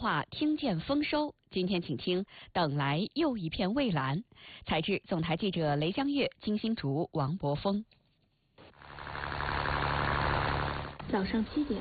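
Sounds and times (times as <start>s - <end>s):
speech: 0.0s - 8.0s, 11.1s - 11.8s
boat motor running at fishing port: 8.7s - 11.8s.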